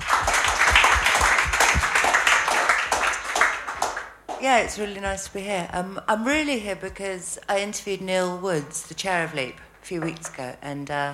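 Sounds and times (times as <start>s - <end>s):
audience applause: 0.0s - 4.4s
speech: 4.4s - 11.1s.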